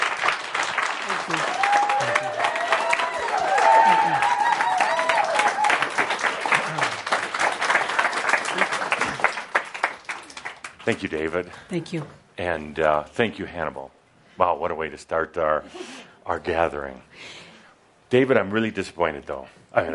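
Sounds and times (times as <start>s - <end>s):
audience clapping: 0.0s - 11.7s
speech: 1.3s - 1.6s, 10.9s - 17.4s, 18.1s - 19.9s.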